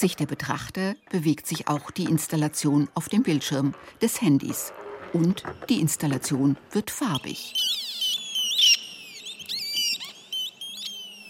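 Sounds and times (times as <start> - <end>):
speech: 0.0 - 7.8
electronic circuits chirping and beeping like birds: 7.2 - 11.2.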